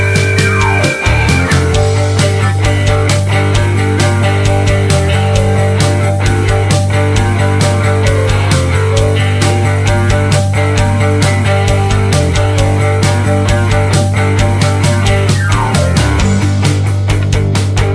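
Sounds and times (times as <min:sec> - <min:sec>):
song in G without backing vocals: 0:00.0 - 0:17.8.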